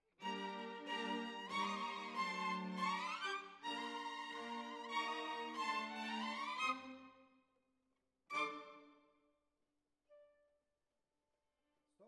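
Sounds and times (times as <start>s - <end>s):
violins: 0.2s - 7.2s, 8.3s - 9.0s.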